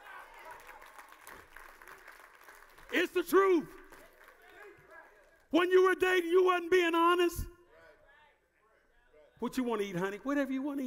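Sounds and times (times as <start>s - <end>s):
audience clapping: 0.0s - 6.0s
speech: 2.9s - 3.8s, 5.5s - 7.5s, 9.4s - 10.8s.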